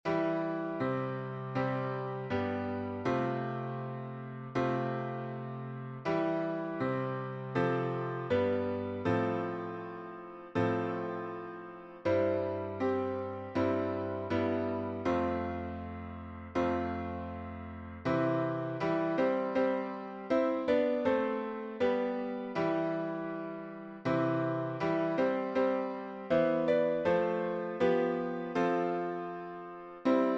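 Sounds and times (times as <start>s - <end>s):
SATB four-part harmony on piano synth: 0.0s - 30.3s.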